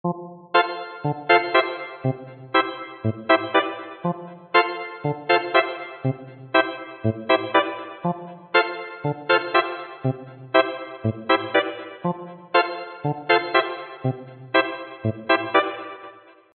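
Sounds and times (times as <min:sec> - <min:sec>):
lead melody: 0:00.0 - 0:16.5.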